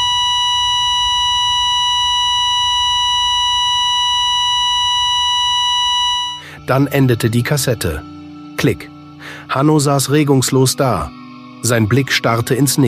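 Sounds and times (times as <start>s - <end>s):
steady electronic beep with bright harmonics: 0.0s - 6.5s
speech: 6.7s - 12.8s.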